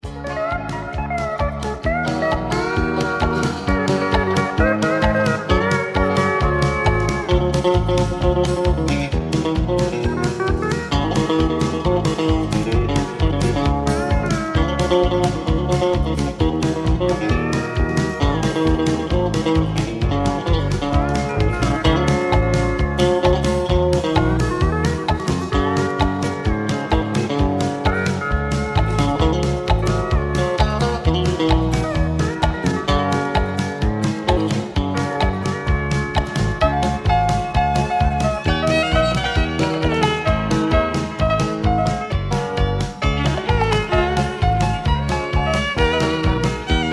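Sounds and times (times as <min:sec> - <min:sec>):
low key instrumental music: 0:00.0 - 0:46.9.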